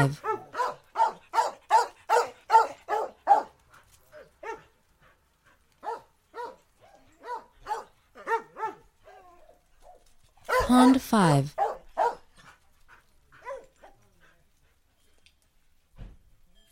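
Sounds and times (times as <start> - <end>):
speech: 0.0 - 0.2, 10.7 - 11.6
dogs barking: 0.1 - 4.8, 5.7 - 9.1, 10.4 - 10.7, 11.5 - 12.6, 13.4 - 14.0.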